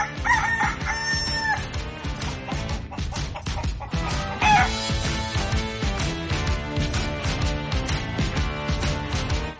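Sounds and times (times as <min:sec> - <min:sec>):
rooster crowing: 0:00.0 - 0:01.7, 0:04.4 - 0:04.8
loud rhythmic music with a driving beat: 0:00.0 - 0:09.5.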